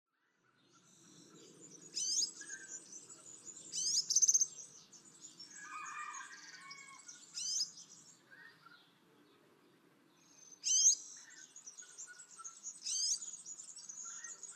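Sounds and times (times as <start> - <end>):
Twite twittering song: 0.4 - 14.5.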